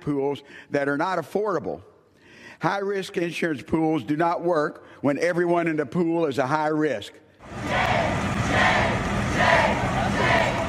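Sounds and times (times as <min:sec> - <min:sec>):
speech: 0:00.0 - 0:01.9, 0:02.6 - 0:08.0
crowd of protesters shouting: 0:07.4 - 0:10.6.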